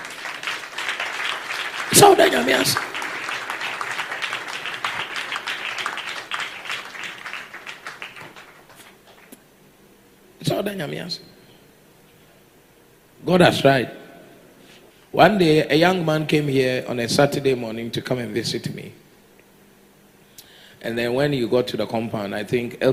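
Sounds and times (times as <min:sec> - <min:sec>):
audience clapping: 0:00.0 - 0:09.4
speech: 0:01.9 - 0:02.9, 0:10.6 - 0:11.4, 0:13.3 - 0:14.0, 0:15.1 - 0:19.0, 0:20.8 - 0:22.9.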